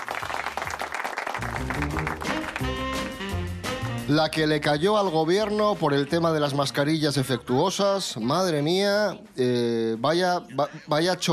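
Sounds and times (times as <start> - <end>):
clapping: 0.0 - 3.2
speech: 1.4 - 2.9, 4.1 - 11.3.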